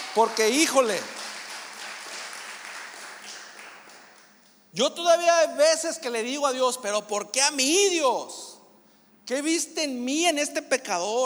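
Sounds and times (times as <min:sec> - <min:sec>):
audience applause: 0:00.0 - 0:04.5
speech: 0:00.2 - 0:01.2, 0:04.8 - 0:08.6, 0:09.3 - 0:11.2.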